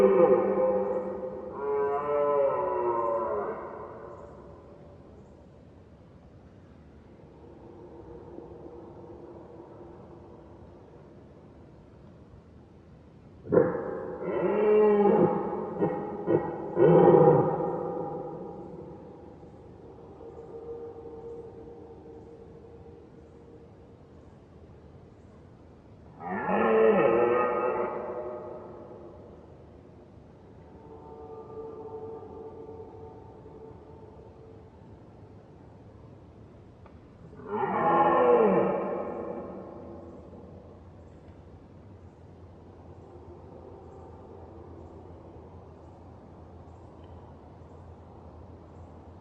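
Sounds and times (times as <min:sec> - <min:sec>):
red deer roaring: 0:00.0 - 0:04.0, 0:13.4 - 0:19.0, 0:26.1 - 0:29.0, 0:37.4 - 0:40.6.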